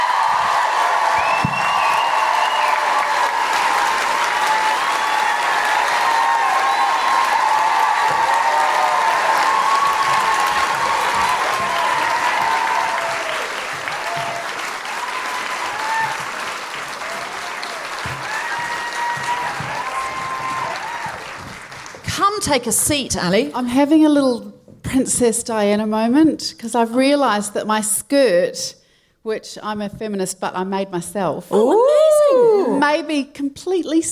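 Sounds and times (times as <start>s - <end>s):
audience whoops and cheers: 0.0s - 21.5s, 31.6s - 32.8s
comedy show audience applause in Auckland: 0.0s - 22.1s
speech: 22.5s - 34.1s.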